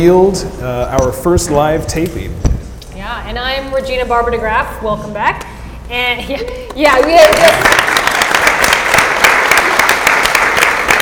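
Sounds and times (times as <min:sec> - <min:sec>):
speech: 0:00.0 - 0:08.0
audience clapping: 0:06.7 - 0:11.0.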